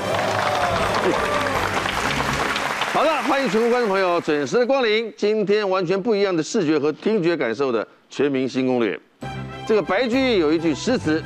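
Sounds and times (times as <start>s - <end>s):
audience applauding: 0.0s - 4.5s
speech: 1.0s - 1.4s, 3.0s - 11.2s.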